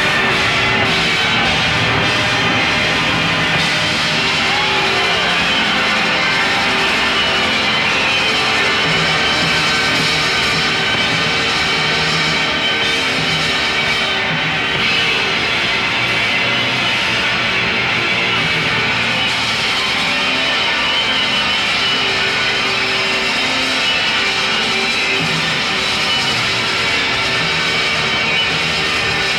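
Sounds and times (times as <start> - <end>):
drum solo: 0.0 - 16.2
keyboard solo: 0.0 - 28.6.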